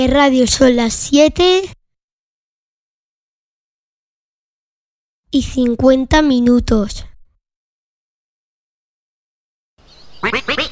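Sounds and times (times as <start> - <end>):
speech: 0.0 - 1.8, 5.3 - 7.1
duck quacking: 10.2 - 10.7.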